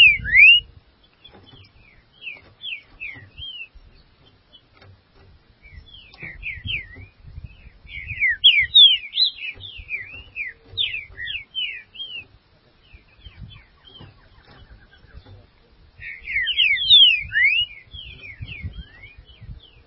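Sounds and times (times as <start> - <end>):
green-winged saltator singing: 0.0 - 0.7, 2.2 - 3.8, 5.6 - 12.3, 16.0 - 19.8.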